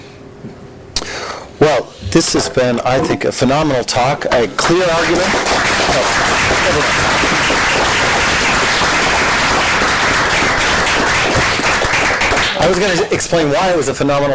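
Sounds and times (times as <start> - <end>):
speech: 1.7 - 8.4, 12.6 - 14.3
audience applause: 4.6 - 13.1.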